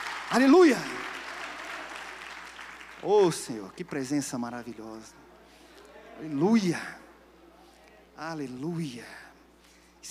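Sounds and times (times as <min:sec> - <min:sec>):
audience applause: 0:00.0 - 0:05.0
speech: 0:00.3 - 0:01.0, 0:03.0 - 0:05.2, 0:06.2 - 0:07.0, 0:08.2 - 0:09.2.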